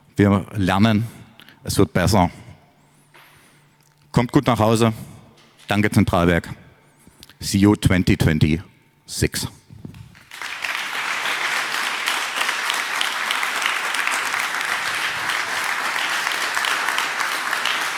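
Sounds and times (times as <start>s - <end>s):
speech: 0.2s - 2.4s, 4.2s - 5.1s, 5.7s - 6.6s, 7.4s - 9.6s
crowd applause: 10.2s - 17.9s.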